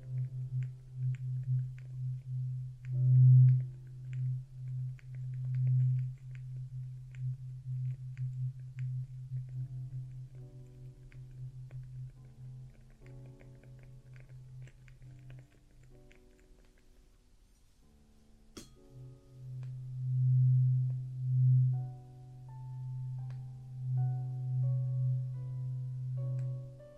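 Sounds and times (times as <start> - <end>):
low droning hum during traditional Chinese ear cleaning: 0.0 - 13.5, 18.6 - 26.9.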